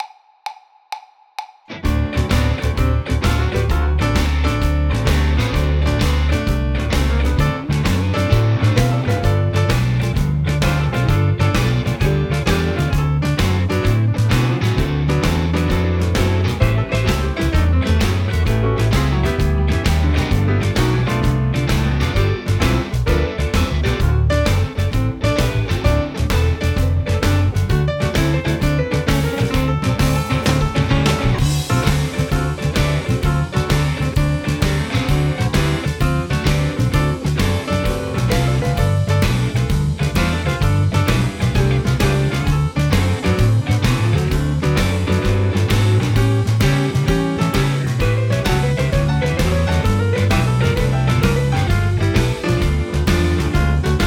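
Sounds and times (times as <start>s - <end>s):
Texas blues music: 1.7s - 54.0s.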